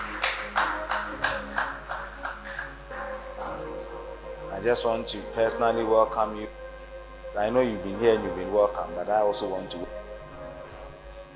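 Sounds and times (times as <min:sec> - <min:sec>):
church congregation clapping hands in a steady rhythm: 0:00.0 - 0:04.0
faint low hum: 0:00.0 - 0:11.3
speech: 0:04.6 - 0:06.6, 0:07.4 - 0:10.0.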